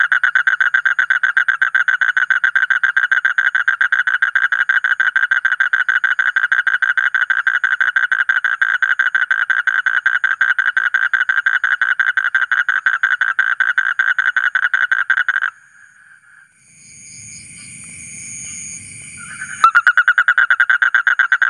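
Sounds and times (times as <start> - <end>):
Asian common toad trilling: 0.0 - 21.4.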